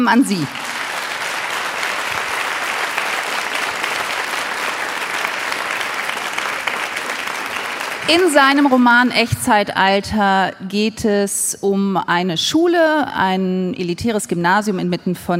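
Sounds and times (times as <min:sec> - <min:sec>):
speech: 0:00.0 - 0:00.6, 0:08.1 - 0:15.3
audience applause welcoming the 2023 German Book Prize winner: 0:00.0 - 0:09.1.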